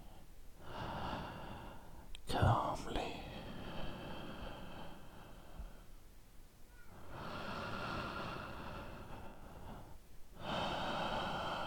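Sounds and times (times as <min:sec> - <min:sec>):
calm deep breathing during a guided relaxation: 0:00.0 - 0:06.0, 0:07.0 - 0:11.6.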